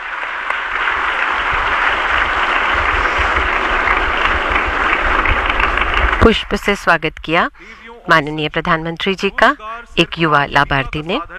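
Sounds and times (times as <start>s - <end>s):
audience applause at a public event honouring the Prime Minister: 0.0s - 6.7s
speech: 6.2s - 11.3s.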